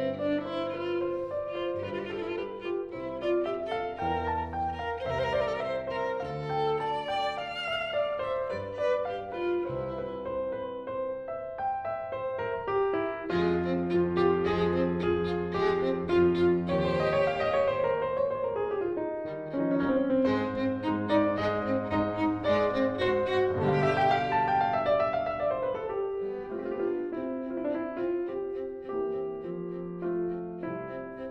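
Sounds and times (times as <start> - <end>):
piano duo in D minor: 0.0 - 31.2
violin in a grand duo in D minor: 0.0 - 31.2.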